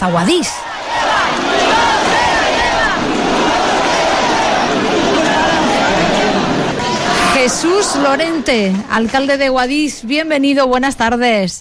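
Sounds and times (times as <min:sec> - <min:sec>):
speech: 0:00.0 - 0:01.8, 0:07.4 - 0:11.5
crowd shouting at the Cascamorras festival in Guadix: 0:00.6 - 0:09.1.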